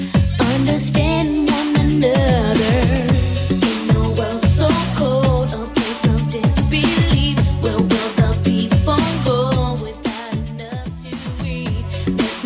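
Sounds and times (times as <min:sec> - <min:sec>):
90s clean music track at 112 bpm: 0:00.0 - 0:12.4.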